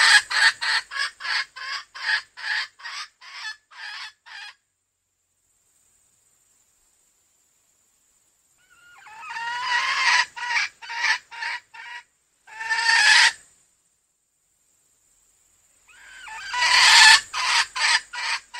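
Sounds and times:
female junglefowl clucking: 0:00.0 - 0:04.6, 0:08.6 - 0:13.4, 0:15.9 - 0:18.5.

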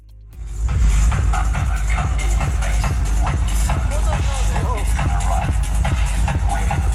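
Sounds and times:
loud rave party music from loudspeakers around a village in the southern Spanish mountains: 0:00.0 - 0:06.9.

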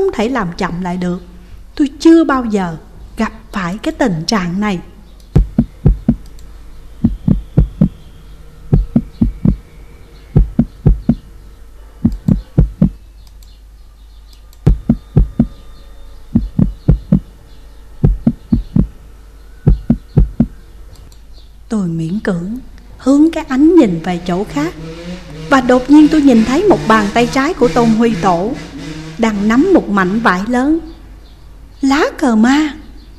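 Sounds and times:
speech: 0:00.1 - 0:04.9, 0:21.7 - 0:24.9, 0:25.5 - 0:30.9, 0:31.8 - 0:32.8
fast pounding heartbeat: 0:05.4 - 0:06.2, 0:07.0 - 0:08.0, 0:08.7 - 0:09.6, 0:10.4 - 0:11.3, 0:12.0 - 0:13.0, 0:14.7 - 0:15.6, 0:16.4 - 0:17.3, 0:18.0 - 0:19.0, 0:19.7 - 0:20.6.

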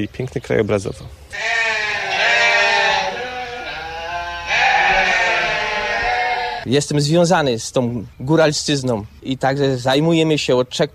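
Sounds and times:
speech: 0:00.0 - 0:01.9, 0:06.6 - 0:10.9
sheep grazing meadows in the landscape parks of Małopolska bleating: 0:01.3 - 0:06.7.

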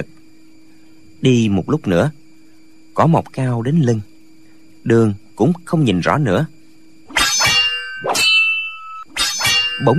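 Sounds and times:
speech: 0:01.2 - 0:02.2, 0:03.0 - 0:04.1, 0:04.8 - 0:06.6, 0:09.8 - 0:09.9
metal weapons clashing in a swordfight: 0:07.1 - 0:09.9.

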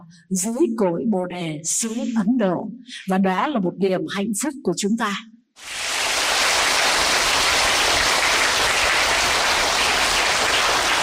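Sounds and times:
speech: 0:00.1 - 0:05.9
audience applause at a Buddhist temple dharma talk: 0:05.6 - 0:11.0.

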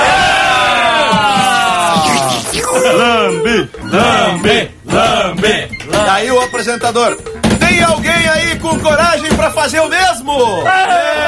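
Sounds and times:
voice imitating an audience cheering: 0:00.0 - 0:03.8
speech: 0:02.8 - 0:11.2.

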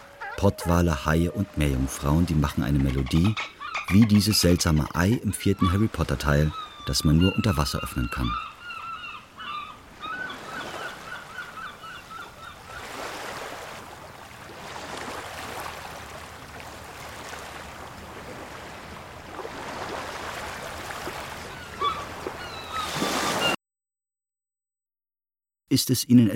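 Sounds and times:
speech: 0:00.4 - 0:08.5, 0:25.8 - 0:26.3
sea waves breaking on the beach: 0:09.8 - 0:23.6.

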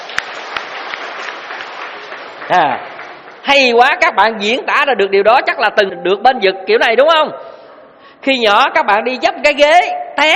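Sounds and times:
audience clapping at a Buddhist dharma talk: 0:00.0 - 0:03.9
speech: 0:02.5 - 0:07.4, 0:08.2 - 0:10.3.

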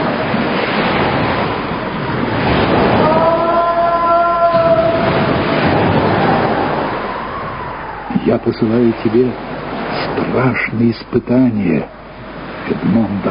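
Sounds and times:
stormy sea waves crashing: 0:00.0 - 0:13.2
high whining tone: 0:02.8 - 0:10.2
speech: 0:08.4 - 0:12.0, 0:12.7 - 0:13.2.

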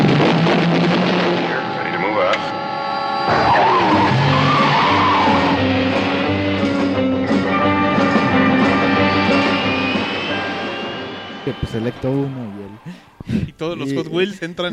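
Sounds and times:
Batmobile's powerful engine roaring and revving with turbine-like whine: 0:00.0 - 0:11.8
Batmobile tires screeching as it speeds off: 0:00.0 - 0:13.2
dense music-like background: 0:03.2 - 0:14.7
speech: 0:11.9 - 0:14.7.

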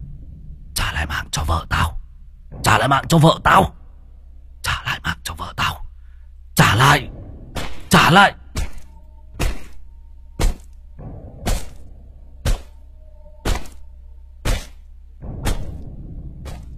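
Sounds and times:
low rumble: 0:00.0 - 0:16.7
speech: 0:01.0 - 0:01.8, 0:02.8 - 0:03.8, 0:06.8 - 0:07.1, 0:08.1 - 0:08.4
machete blows chopping into a body: 0:07.6 - 0:10.8, 0:11.4 - 0:12.8, 0:13.4 - 0:13.8, 0:14.4 - 0:16.7.

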